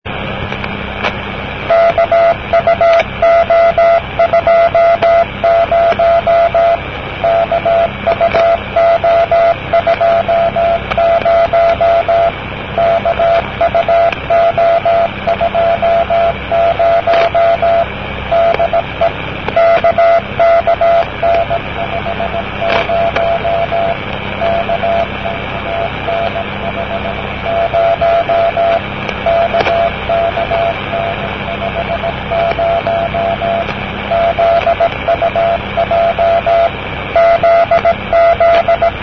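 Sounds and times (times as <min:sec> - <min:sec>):
CW Morse code beeps: 0:01.7 - 0:39.0.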